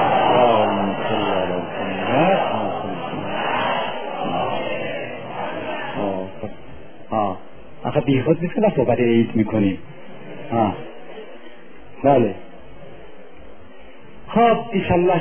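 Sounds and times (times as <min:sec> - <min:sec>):
audience reciting salawat in unison at a religious gathering: 0:00.0 - 0:06.5
speech: 0:08.1 - 0:10.9, 0:12.0 - 0:12.5, 0:14.4 - 0:15.1.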